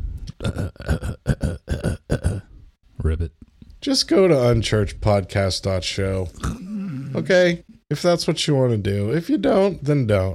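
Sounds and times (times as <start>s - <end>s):
speech: 0.4s - 1.4s, 3.0s - 6.6s, 7.2s - 10.3s
throat clearing: 0.4s - 2.5s, 6.4s - 7.2s.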